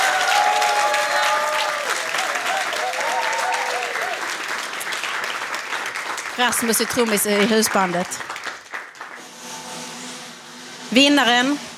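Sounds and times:
people cheering: 0.0 - 9.2
audience applause: 0.0 - 9.4
speech: 6.4 - 8.3, 10.9 - 11.7.

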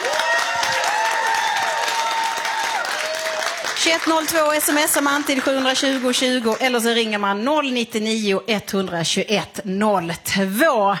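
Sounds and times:
studio audience applause: 0.0 - 6.8
speech: 3.8 - 10.9.

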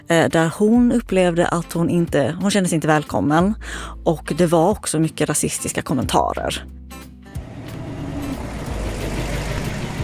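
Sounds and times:
speech: 0.1 - 7.1
car driving on road: 7.4 - 10.0.

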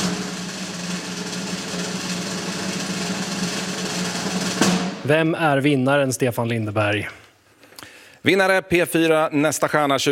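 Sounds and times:
drum roll before a music talent contest winner is announced: 0.0 - 5.7
speech: 5.1 - 7.2, 8.2 - 10.1.

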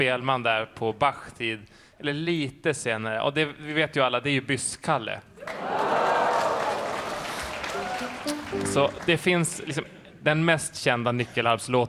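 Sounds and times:
speech: 0.0 - 5.9, 7.8 - 11.8
audience at a concert cheering and applauding: 5.4 - 9.7.

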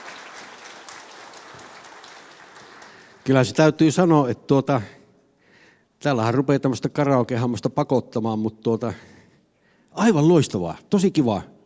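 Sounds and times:
audience applause after a karaoke song in a radio studio: 0.0 - 3.3
speech: 3.2 - 5.0, 6.0 - 9.1, 9.9 - 11.5.

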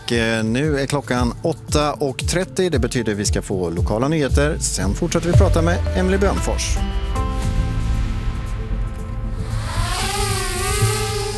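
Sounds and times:
speech: 0.1 - 7.2
police drone rotors whining on emergency call-out: 5.3 - 11.3.

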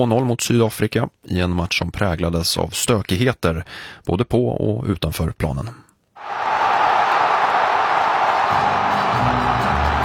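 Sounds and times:
speech: 0.0 - 5.8
football stadium crowd of 80000 spectators cheering at a Mexico goal: 6.2 - 10.0.

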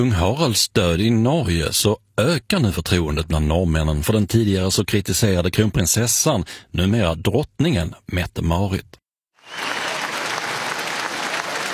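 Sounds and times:
speech: 0.0 - 9.8
crowd applauding and cheering Norway's new royal couple at the palace balcony: 9.4 - 11.7.

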